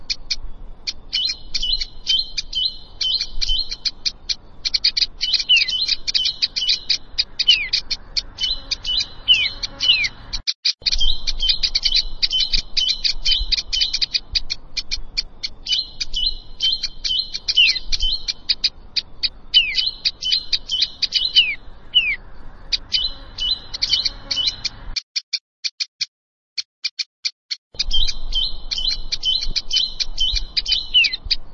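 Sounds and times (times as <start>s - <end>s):
Plain prinia song of fast thin buzzy chirps: 0.0s - 31.5s.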